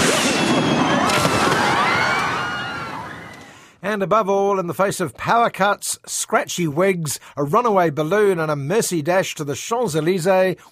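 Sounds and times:
fireworks crackling and popping: 0.0s - 2.3s
speech: 3.9s - 10.7s.

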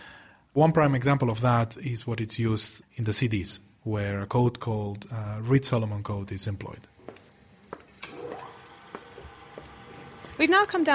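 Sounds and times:
speech: 0.6s - 6.9s, 10.4s - 10.9s
drill boring holes into a CD: 8.0s - 10.5s.

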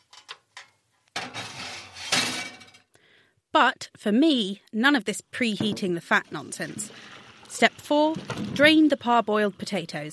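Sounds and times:
metal baking trays coated in goose fat going into an oven: 0.0s - 2.9s
speech: 3.6s - 10.1s.

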